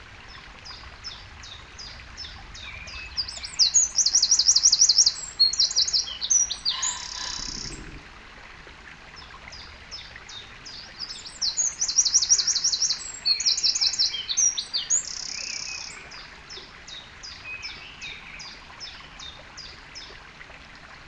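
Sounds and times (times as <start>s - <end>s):
stream trickling in the hills of mid Wales: 0.0s - 21.0s
bird repeating a bright rapid trilling phrase: 6.6s - 8.0s.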